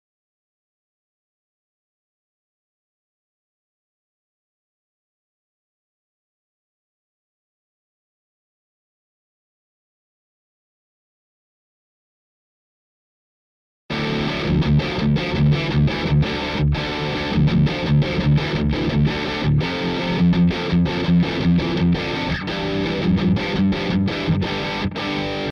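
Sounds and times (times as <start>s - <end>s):
guitar: 13.9s - 25.4s.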